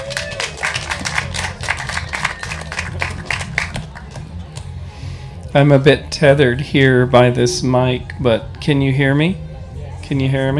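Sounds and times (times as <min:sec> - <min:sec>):
audience applause: 0:00.0 - 0:04.3
speech: 0:05.5 - 0:09.4, 0:10.1 - 0:10.5.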